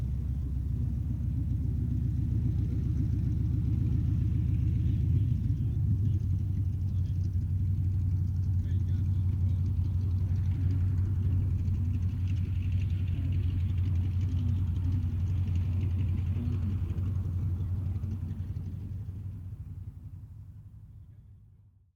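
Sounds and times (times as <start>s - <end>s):
distant CA-28 Ceres aircraft taxiing: 0.0s - 21.9s.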